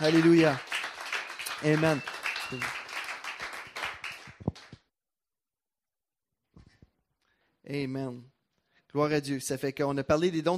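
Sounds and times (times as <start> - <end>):
speech: 0.0 - 0.7, 1.6 - 2.8, 7.7 - 8.3, 8.9 - 10.5
audience applause: 0.0 - 4.7.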